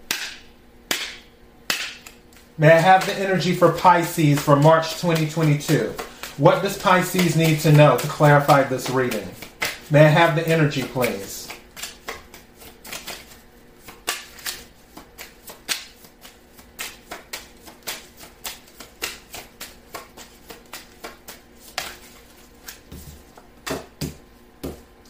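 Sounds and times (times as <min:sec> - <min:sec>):
tarot cards being shuffled and drawn: 0:01.9 - 0:25.0
speech: 0:02.6 - 0:11.4.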